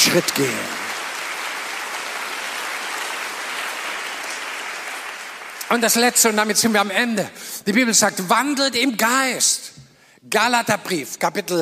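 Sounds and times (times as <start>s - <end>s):
large crowd applause: 0.0s - 6.0s
speech: 0.1s - 0.8s, 5.7s - 11.6s.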